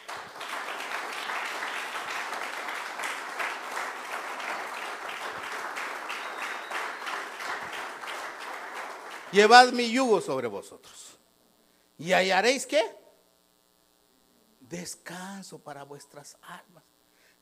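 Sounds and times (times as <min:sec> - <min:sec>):
audience clapping: 0:00.0 - 0:10.2
speech: 0:09.3 - 0:11.1, 0:12.0 - 0:13.0, 0:14.7 - 0:17.4.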